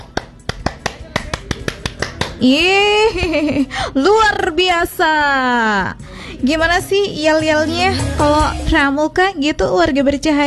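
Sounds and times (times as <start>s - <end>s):
rhythmic hand clapping by Indonesian scouts: 0.0s - 2.7s
speech: 2.4s - 10.4s.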